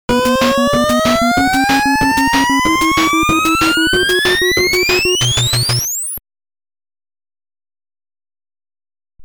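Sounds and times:
warp sound effect: 0.1 - 6.2.

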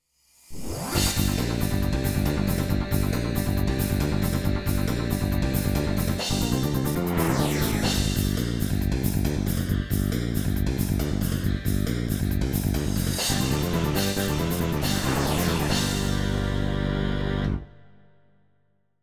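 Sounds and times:
home run background music: 1.0 - 18.3.

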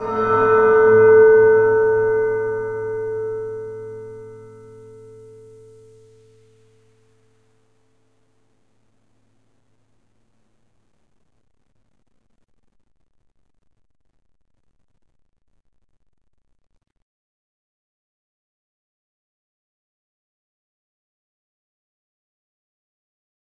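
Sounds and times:
church music: 0.0 - 7.3.

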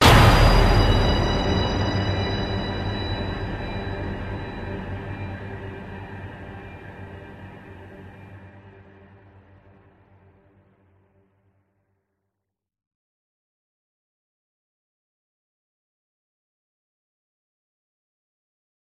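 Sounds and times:
elevator music sting: 0.0 - 8.6.

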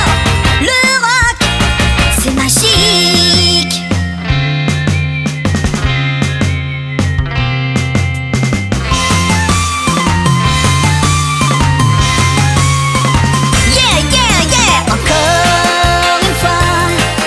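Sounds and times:
French rock waltz music: 0.0 - 17.2.

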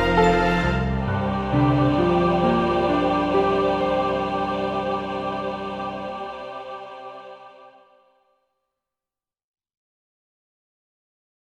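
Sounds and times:
instrumental music: 0.0 - 7.8.

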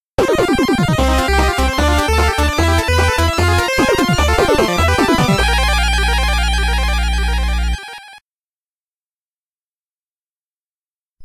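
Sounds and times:
8-bit boss defeat game music: 0.2 - 8.2.

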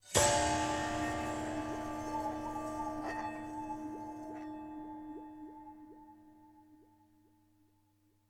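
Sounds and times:
conversation stinger: 0.0 - 6.1.

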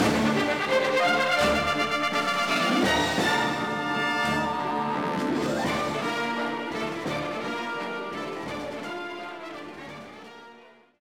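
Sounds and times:
battle music: 0.0 - 10.0.

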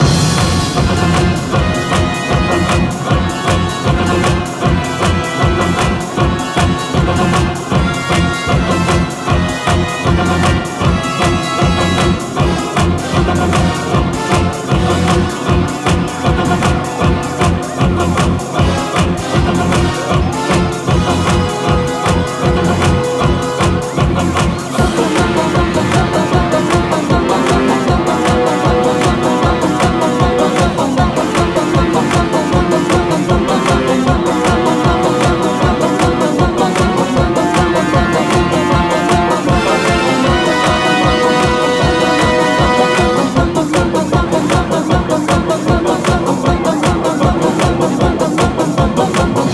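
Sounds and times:
race winning music: 0.0 - 49.5.

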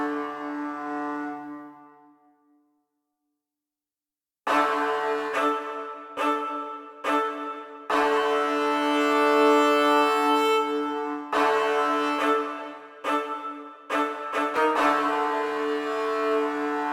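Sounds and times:
theme accompaniment music: 4.5 - 16.9.

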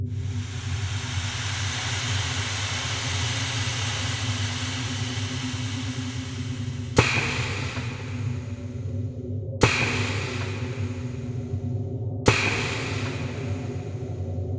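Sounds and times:
sewer ambience: 0.2 - 9.0, 9.6 - 11.7, 12.3 - 14.4.

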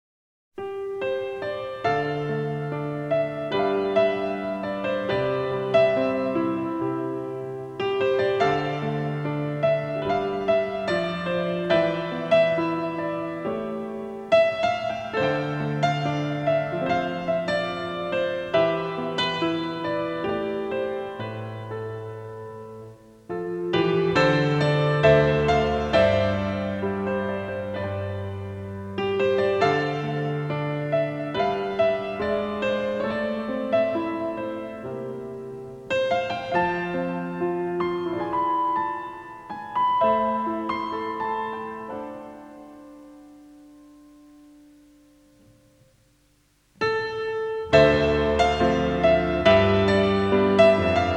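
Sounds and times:
video game theme on piano: 0.6 - 45.8, 47.0 - 51.1.

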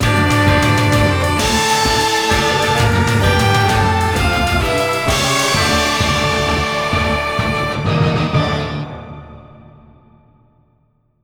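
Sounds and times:
victory jingle: 0.0 - 9.0.

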